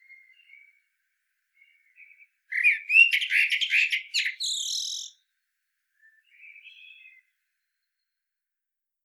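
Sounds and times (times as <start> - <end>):
common blackbird singing: 1.6 - 5.2, 6.0 - 7.3.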